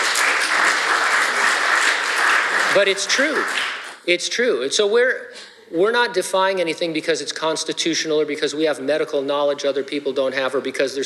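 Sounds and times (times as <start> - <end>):
audience applause: 0.0 - 4.0
speech: 2.8 - 11.0.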